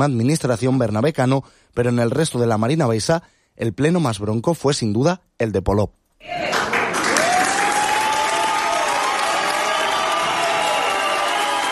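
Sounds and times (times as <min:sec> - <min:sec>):
speech: 0:00.0 - 0:06.5
applause at council session: 0:06.2 - 0:11.6
people booing at council session: 0:06.2 - 0:11.6.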